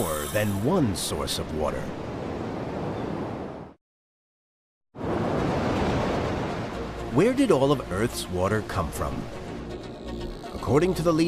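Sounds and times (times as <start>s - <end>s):
speech: 0.0s - 2.1s, 7.2s - 9.4s, 10.6s - 11.2s
ocean waves: 0.0s - 3.7s, 5.0s - 10.2s.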